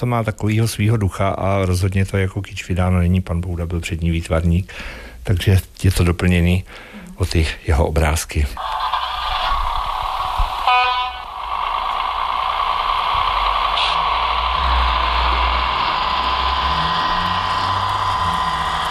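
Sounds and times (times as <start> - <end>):
speech: 0.0 - 9.0
train departing: 8.6 - 18.8.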